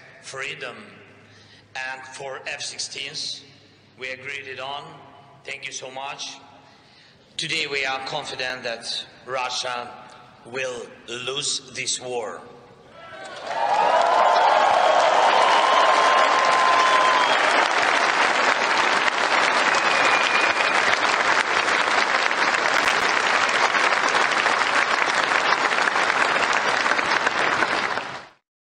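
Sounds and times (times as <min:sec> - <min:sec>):
speech: 0:00.3 - 0:01.1, 0:01.8 - 0:06.5, 0:07.4 - 0:12.6
cheers and whistles: 0:13.0 - 0:17.9, 0:19.4 - 0:21.2
large crowd applauding in a standing ovation: 0:13.3 - 0:28.4.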